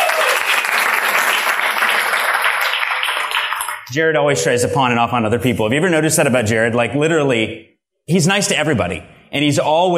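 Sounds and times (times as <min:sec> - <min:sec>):
crowd applauding: 0:00.0 - 0:03.9
speech: 0:03.9 - 0:09.9.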